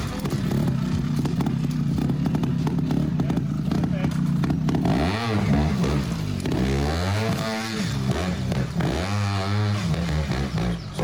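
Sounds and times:
rattling clatter: 0.0 - 8.8
motorcycle engine revving during training in forest: 0.0 - 11.0.

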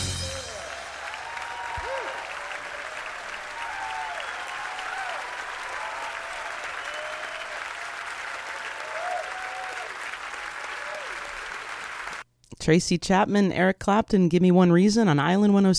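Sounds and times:
long applause from a live audience: 0.1 - 12.2
speech: 12.7 - 15.7.

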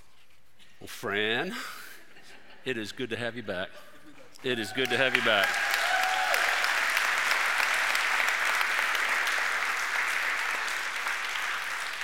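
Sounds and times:
speech: 0.8 - 1.8, 2.6 - 5.7
audience applause: 4.7 - 12.0.

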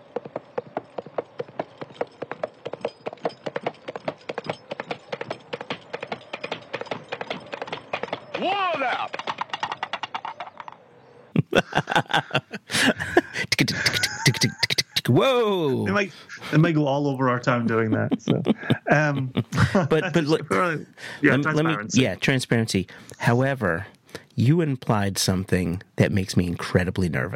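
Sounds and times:
horse hooves clip-clopping or coconut shells: 0.0 - 10.9
speech: 0.2 - 0.4, 11.8 - 13.0, 15.1 - 27.3
laughter: 11.3 - 16.7, 17.5 - 22.0.

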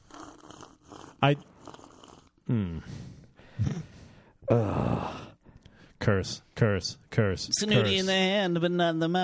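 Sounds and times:
loud sipping of tea: 0.0 - 2.4
speech: 1.2 - 1.5, 2.5 - 3.8, 4.5 - 5.2, 6.1 - 9.2.

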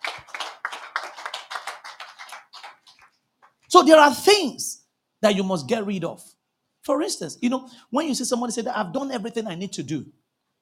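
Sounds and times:
audience clapping: 0.0 - 3.6
speech: 3.8 - 6.3, 6.9 - 10.2.

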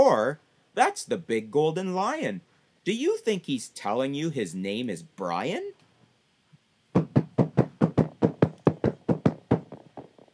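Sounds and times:
speech: 0.0 - 5.8
gorilla pounding its chest: 6.9 - 10.3.

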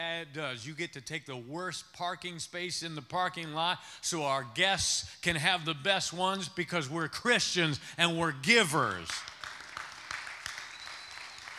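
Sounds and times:
speech: 0.2 - 9.3
polite golf clap: 9.1 - 11.5.

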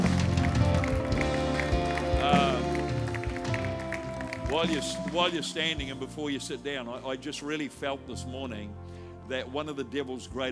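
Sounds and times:
audience clapping hands: 0.0 - 5.9
sustained musical tone: 0.0 - 7.2
speech: 4.5 - 10.4.

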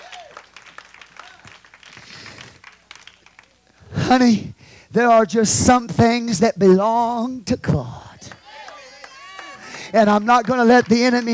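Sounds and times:
audience hand clapping: 0.0 - 3.8, 8.3 - 11.3
speech: 4.1 - 8.0, 9.9 - 11.3.

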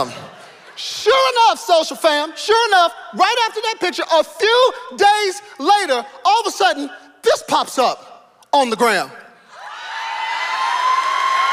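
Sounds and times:
speech: 0.0 - 0.2, 0.8 - 9.2
crowd cheering and whooping: 9.5 - 11.5.

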